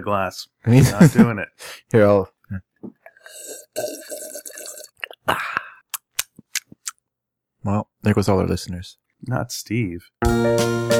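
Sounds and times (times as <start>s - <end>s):
speech: 0.0s - 4.4s, 5.3s - 5.6s, 7.6s - 10.9s
loud drinking noise: 3.0s - 5.2s.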